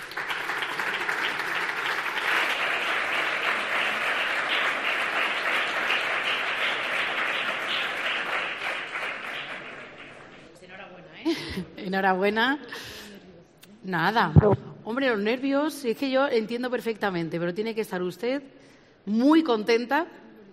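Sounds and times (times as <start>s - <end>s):
audience applause: 0.0s - 10.5s
speech: 11.9s - 12.9s, 13.8s - 20.2s.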